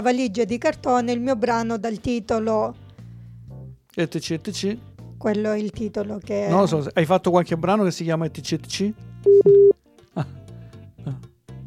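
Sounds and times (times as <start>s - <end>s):
speech: 0.0s - 2.8s, 4.0s - 10.4s
telephone tone as a phone call drops: 9.3s - 9.8s.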